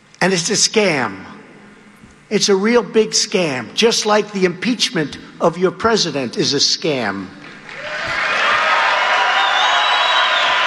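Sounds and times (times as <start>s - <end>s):
speech: 0.2s - 1.4s, 2.3s - 7.4s
audience applause: 7.6s - 10.6s.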